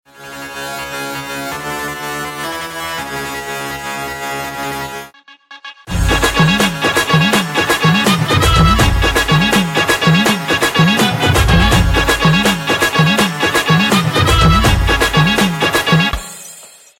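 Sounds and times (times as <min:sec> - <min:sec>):
dance background music ringtone: 0:05.8 - 0:16.6.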